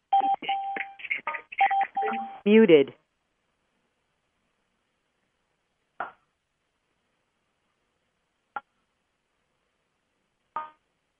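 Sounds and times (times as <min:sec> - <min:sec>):
telephone keypad dialing tones: 0:00.1 - 0:01.0, 0:01.6 - 0:02.4
speech: 0:02.4 - 0:03.0.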